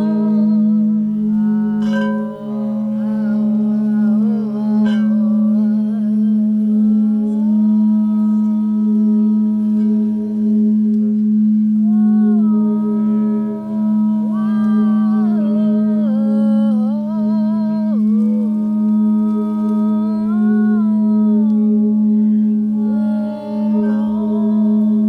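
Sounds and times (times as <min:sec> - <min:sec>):
crystal bowl chant: 0:00.0 - 0:25.0.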